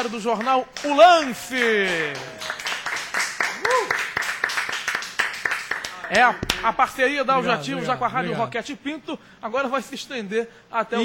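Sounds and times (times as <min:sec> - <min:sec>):
speech: 0:00.0 - 0:02.6, 0:06.1 - 0:11.0
people clapping hands: 0:00.0 - 0:07.0.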